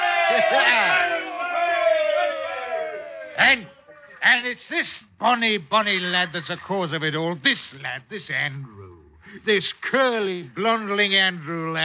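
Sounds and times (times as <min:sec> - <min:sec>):
sailors cheering: 0:00.0 - 0:04.2
speech: 0:00.3 - 0:01.4, 0:03.4 - 0:08.8, 0:09.4 - 0:11.8.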